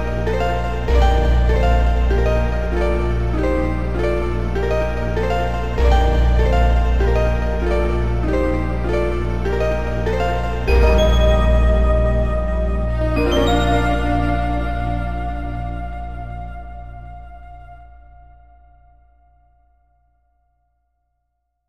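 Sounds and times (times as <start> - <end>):
soft arpeggio: 0.0 - 15.8.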